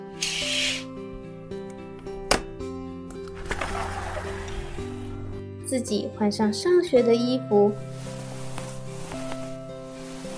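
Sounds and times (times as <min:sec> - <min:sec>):
curtain being pulled open: 0:00.1 - 0:00.9, 0:03.4 - 0:05.2, 0:07.8 - 0:10.3
speech: 0:05.7 - 0:07.9.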